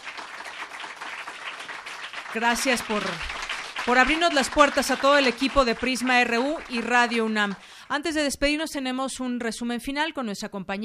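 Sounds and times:
audience applause: 0.0 - 7.7
speech: 2.3 - 10.8.

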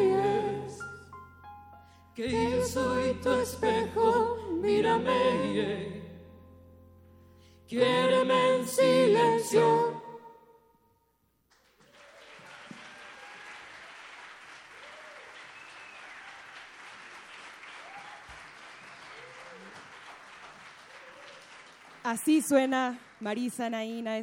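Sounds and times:
speech: 2.2 - 4.0, 4.6 - 6.0, 7.7 - 10.0, 22.1 - 24.2
live audience applauding: 11.5 - 23.6
whoops and cheers: 11.8 - 14.1, 14.7 - 16.6, 17.7 - 19.9, 20.9 - 21.5.

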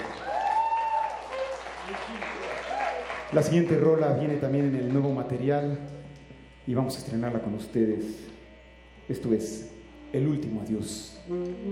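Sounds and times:
audience applause: 0.0 - 5.5
speech: 3.3 - 6.0, 6.7 - 8.3, 9.1 - 11.6.

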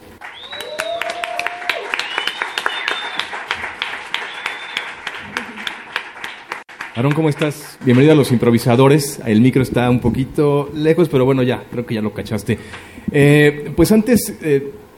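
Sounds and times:
crowd applauding: 0.0 - 8.7
whistles and cheers: 0.2 - 5.2
speech: 7.0 - 14.8.

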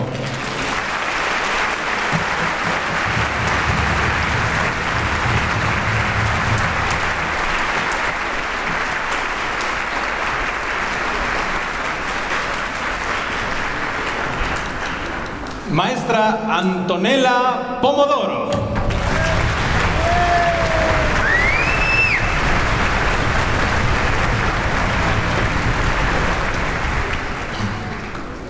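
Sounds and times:
audience cheering: 0.0 - 11.6, 18.8 - 28.4
loud applause from a large audience: 0.0 - 15.7, 18.8 - 28.4
speech: 16.1 - 18.6.

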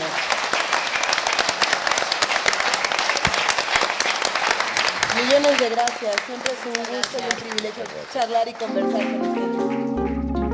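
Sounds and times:
audience applause: 0.0 - 10.4
speech: 5.4 - 9.6.

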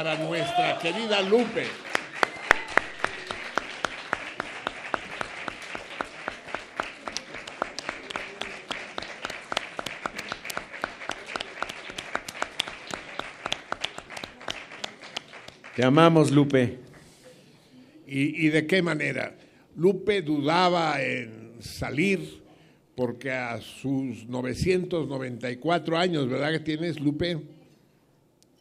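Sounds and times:
speech: 0.0 - 1.9, 15.8 - 16.8, 18.1 - 22.4, 23.0 - 27.6
audience applause: 0.0 - 16.4.

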